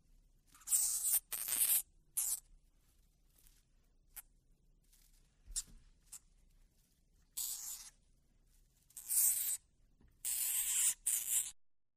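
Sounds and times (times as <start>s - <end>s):
dwarf hamster busy little squawks: 0.6s - 2.4s, 7.4s - 7.9s, 9.0s - 9.6s, 10.2s - 11.9s.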